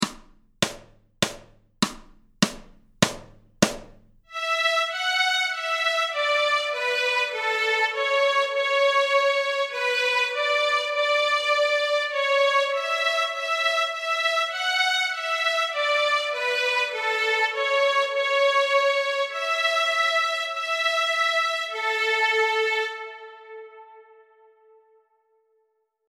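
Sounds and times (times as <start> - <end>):
violin: 4.3 - 24.9.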